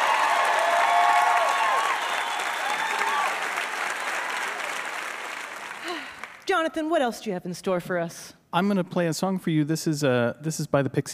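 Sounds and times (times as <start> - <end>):
audience applause: 0.0 - 6.4
speech: 6.5 - 11.1.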